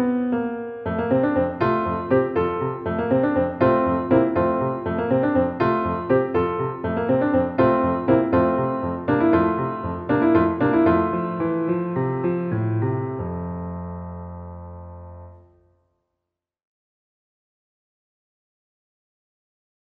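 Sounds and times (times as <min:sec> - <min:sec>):
piano: 0:00.0 - 0:15.8.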